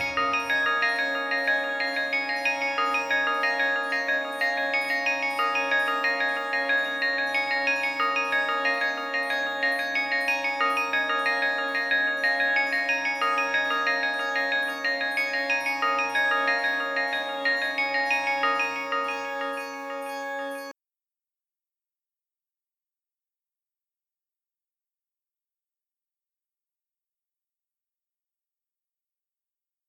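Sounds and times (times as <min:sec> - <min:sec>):
background music: 0:00.0 - 0:20.7.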